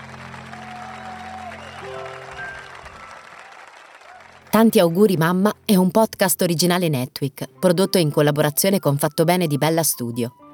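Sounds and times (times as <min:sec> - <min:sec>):
applause from a hospital ward: 0:00.0 - 0:04.5
speech: 0:01.8 - 0:02.5, 0:04.6 - 0:10.4.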